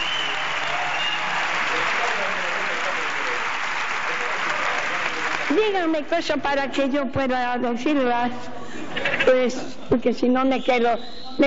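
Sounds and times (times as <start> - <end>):
audience applauding: 0.0 - 5.9
speech: 5.5 - 11.4.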